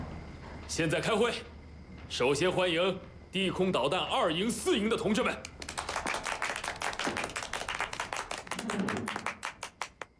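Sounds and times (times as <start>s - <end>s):
speech: 0.7s - 1.5s, 2.1s - 5.5s
scattered applause from a meeting audience: 5.4s - 10.1s.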